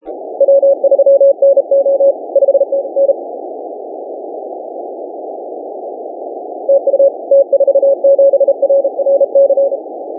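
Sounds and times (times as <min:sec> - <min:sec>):
17m band CW morse code: 0:00.4 - 0:03.1, 0:06.7 - 0:09.8.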